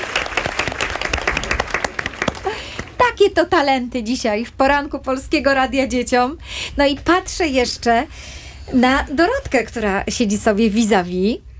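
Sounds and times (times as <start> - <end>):
applause: 0.0 - 3.0
speech: 3.2 - 11.5.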